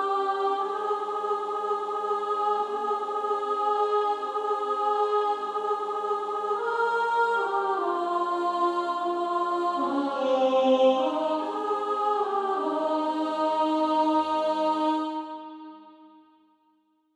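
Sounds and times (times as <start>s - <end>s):
female choir singing: 0.0s - 16.1s.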